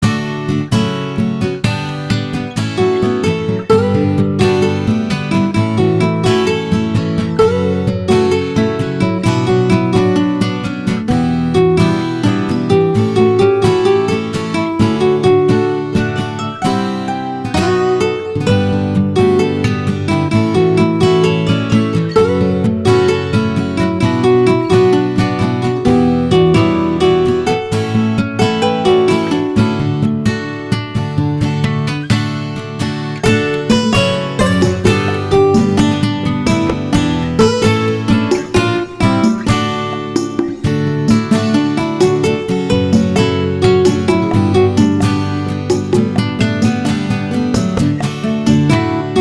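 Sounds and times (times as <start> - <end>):
guitar medley: 0.0 - 49.1.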